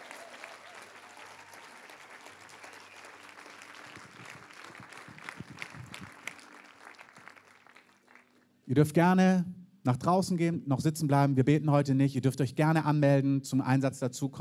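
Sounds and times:
audience applause: 0.0 - 8.4
speech: 8.7 - 14.3.

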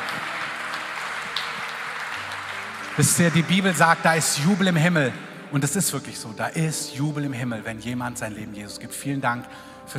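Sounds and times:
audience applause: 0.0 - 5.0
speech: 3.0 - 9.9.

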